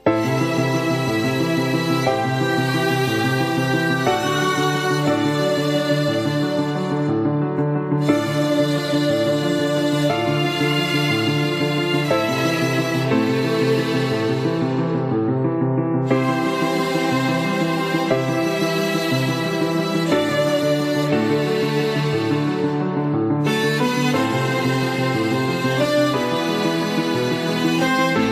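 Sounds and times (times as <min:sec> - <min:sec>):
violin: 0:00.0 - 0:28.3.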